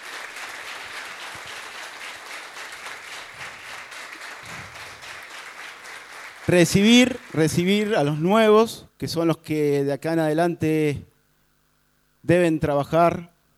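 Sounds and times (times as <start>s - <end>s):
audience applause: 0.0s - 8.2s
speech: 6.5s - 11.1s, 12.2s - 13.3s.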